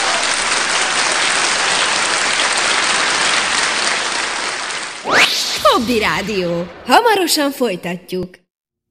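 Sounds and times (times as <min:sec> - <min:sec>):
applause: 0:00.0 - 0:05.0
speech: 0:05.8 - 0:08.4.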